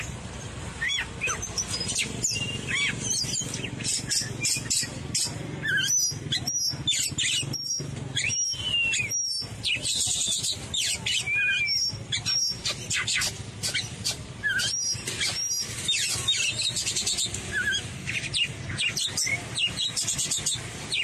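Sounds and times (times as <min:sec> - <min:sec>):
Oriental magpie-robin singing: 0:00.0 - 0:21.0.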